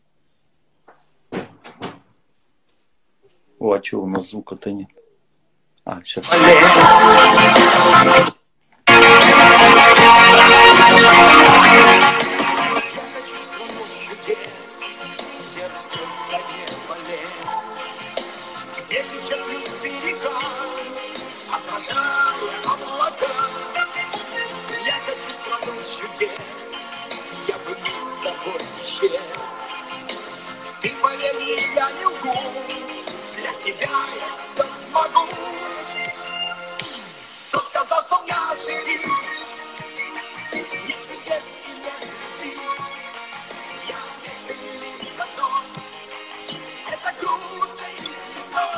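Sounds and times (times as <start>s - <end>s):
speech: 3.6s - 5.0s, 5.9s - 8.4s
song played back: 6.2s - 48.7s.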